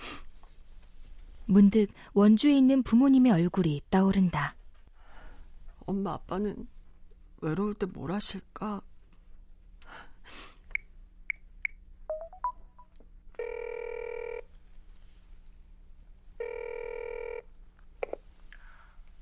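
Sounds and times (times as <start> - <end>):
speech: 1.5 - 4.6, 5.9 - 6.8, 7.4 - 8.9
breaths: 4.9 - 5.7, 9.8 - 10.7, 18.5 - 19.2
gasp: 5.0 - 5.5, 18.5 - 19.0
telephone ringing: 13.4 - 14.5, 16.4 - 17.5.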